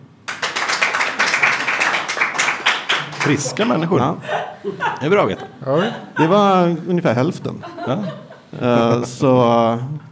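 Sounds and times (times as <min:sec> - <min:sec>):
audience clapping: 0:00.0 - 0:04.1
laughter: 0:02.9 - 0:09.5
speech: 0:03.2 - 0:10.1.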